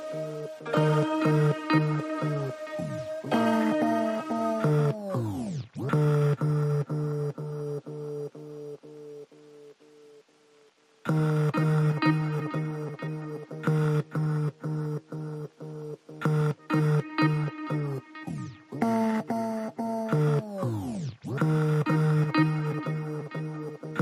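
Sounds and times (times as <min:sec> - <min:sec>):
keyboard chords: 0:00.0 - 0:05.4, 0:11.1 - 0:20.4, 0:21.4 - 0:23.9
synth pulses: 0:00.0 - 0:09.2, 0:11.1 - 0:23.9.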